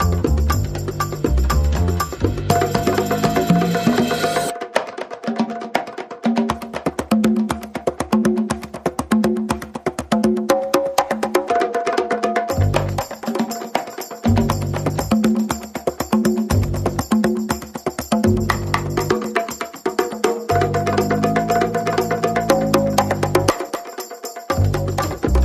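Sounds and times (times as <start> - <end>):
bass: 0.0 - 4.5, 12.5 - 13.1, 14.3 - 15.2, 16.5 - 17.1, 18.3 - 19.2, 20.5 - 23.5, 24.5 - 25.4
percussion: 0.0 - 25.4.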